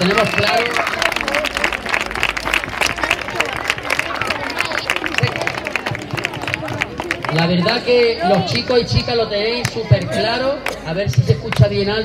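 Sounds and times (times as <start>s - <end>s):
audience applause: 0.0s - 7.9s
crowd murmur: 0.0s - 12.0s
speech: 7.5s - 12.0s.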